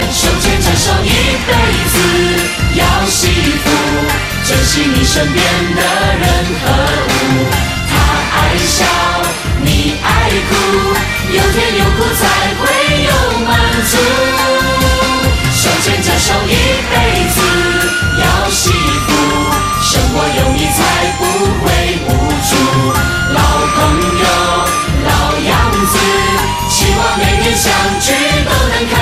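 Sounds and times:
chorus singing: 0.0s - 29.0s.

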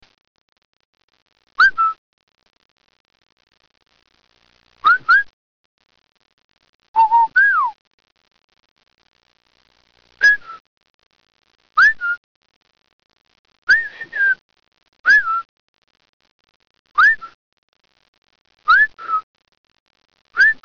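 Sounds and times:
person whistling: 4.8s - 5.3s, 7.0s - 7.8s, 10.2s - 10.6s, 11.8s - 12.2s, 13.7s - 14.4s, 15.1s - 15.4s, 17.0s - 17.4s, 18.7s - 19.2s, 20.4s - 20.6s.

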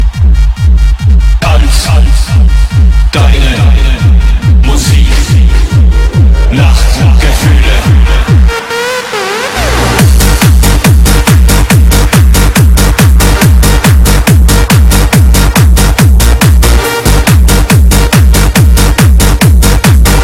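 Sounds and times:
electronic music: 0.0s - 20.2s.

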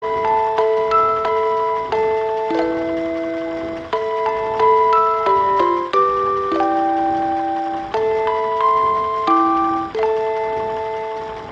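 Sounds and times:
music box: 0.0s - 11.5s.

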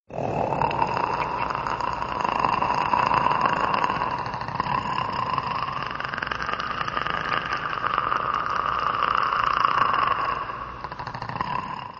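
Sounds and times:
predator snarl: 0.1s - 11.9s.

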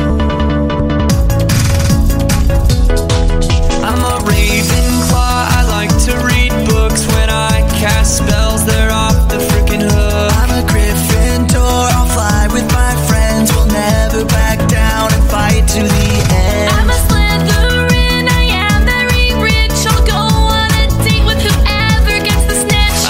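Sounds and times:
house music: 0.2s - 23.0s.

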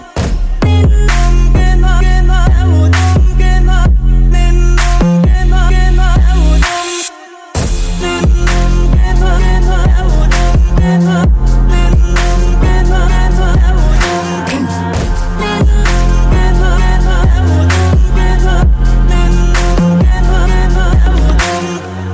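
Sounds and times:
trap beat: 0.0s - 22.1s.

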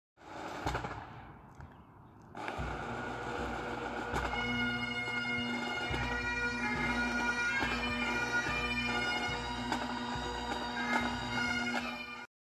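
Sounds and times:
bagpipes: 2.4s - 12.3s.

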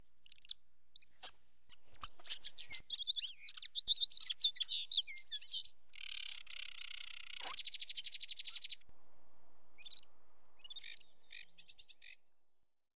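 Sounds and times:
birds singing: 0.2s - 8.8s, 10.6s - 12.2s.

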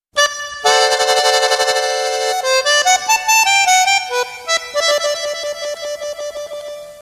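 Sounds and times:
accordion: 0.1s - 7.0s.

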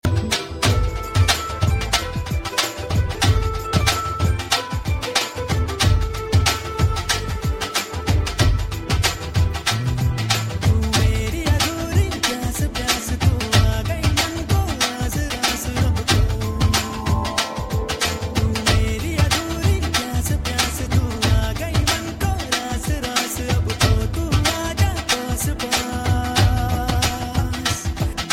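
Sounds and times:
Punjabi music mix: 0.0s - 28.3s.

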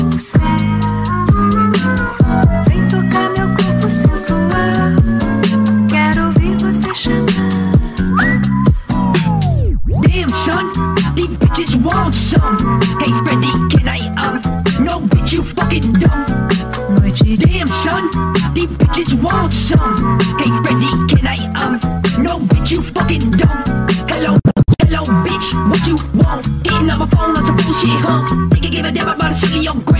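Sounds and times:
cha cha music: 0.0s - 29.9s.

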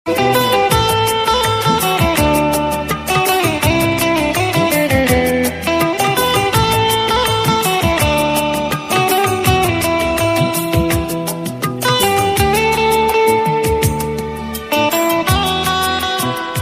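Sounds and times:
instrumental music: 0.1s - 16.5s.

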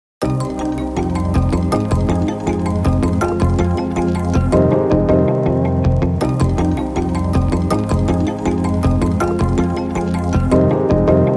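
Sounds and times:
wonky beats: 0.2s - 5.1s, 6.2s - 11.2s.

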